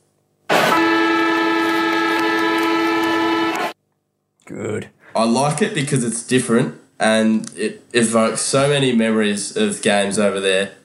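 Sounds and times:
stadium siren blast: 0.5s - 3.8s
speech: 4.6s - 10.8s.

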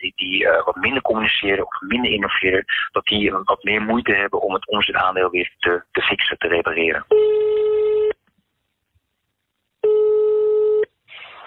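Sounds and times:
line noise hiss as the call connects: 0.0s - 7.1s, 8.2s - 9.8s, 11.0s - 11.4s
speech: 0.3s - 7.5s
telephone ringback tone: 7.1s - 8.1s, 9.8s - 10.9s.

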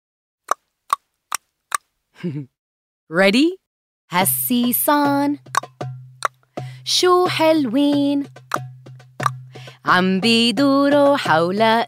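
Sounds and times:
speech: 2.2s - 5.6s, 6.9s - 8.4s, 9.9s - 11.8s
sharp mouth clicks: 5.5s - 6.4s, 8.5s - 9.4s.

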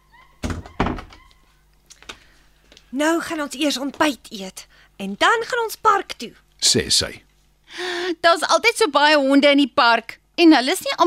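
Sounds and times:
kitchen door closing: 0.4s - 1.4s
speech: 2.9s - 11.0s.

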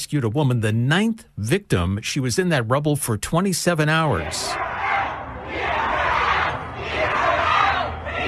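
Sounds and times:
speech: 0.0s - 4.8s
crowd cheering on firefighters: 4.1s - 8.2s.

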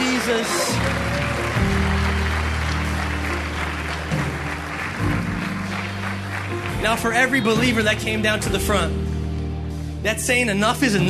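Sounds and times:
audience applauding: 0.0s - 8.2s
low keyboard chords: 0.0s - 11.0s
speech: 0.3s - 1.1s, 6.8s - 9.1s, 10.0s - 11.0s.

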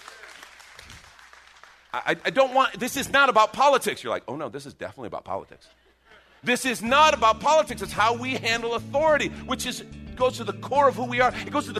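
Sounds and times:
audience applause: 0.0s - 2.6s
crowd cheering: 0.0s - 2.7s
speech: 1.9s - 5.8s, 6.4s - 11.7s.

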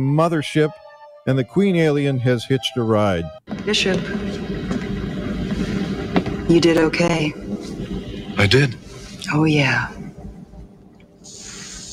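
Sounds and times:
speech: 0.0s - 4.3s, 6.5s - 7.4s, 8.4s - 10.0s
acid hissing: 3.8s - 11.9s.

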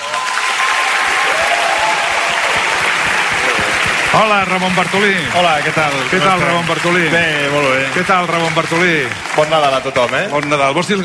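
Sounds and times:
audience applause: 0.0s - 11.0s
speech: 4.2s - 11.0s.

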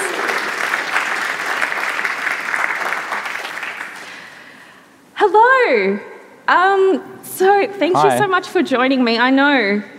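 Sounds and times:
audience applause: 0.0s - 4.4s
speech: 5.2s - 9.9s.

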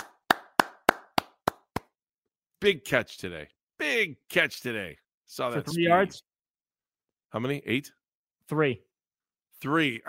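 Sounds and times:
studio audience hand claps: 0.0s - 2.0s
speech: 2.6s - 6.3s, 7.3s - 8.9s, 9.6s - 10.0s.

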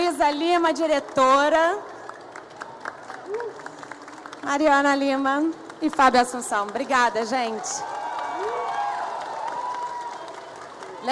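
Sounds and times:
speech: 0.2s - 1.9s, 4.4s - 8.6s
audience applause: 1.4s - 11.1s.

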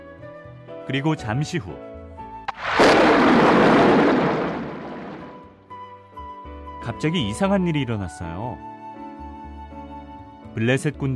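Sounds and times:
speech: 0.9s - 1.9s, 6.9s - 8.7s, 10.6s - 11.1s
loud thunder in a storm: 2.5s - 5.6s.

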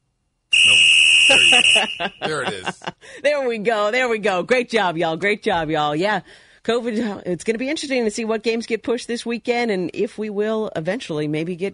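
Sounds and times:
referee whistle blast: 0.5s - 2.2s
laughter: 1.3s - 3.0s
speech: 1.3s - 11.7s.

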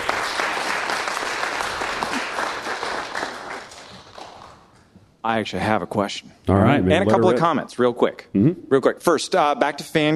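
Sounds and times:
audience applause: 0.0s - 4.7s
speech: 5.2s - 10.1s.

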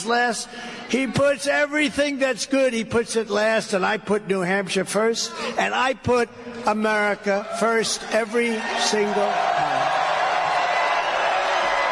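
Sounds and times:
speech: 0.0s - 9.7s
crowd cheering at a political rally in New Hampshire: 7.3s - 11.9s.

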